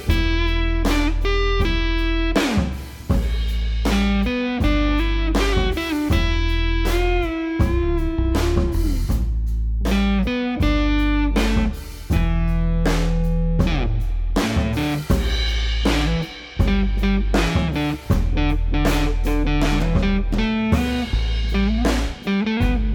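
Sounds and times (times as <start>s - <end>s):
slow blues played with brushes: 0.0s - 22.9s.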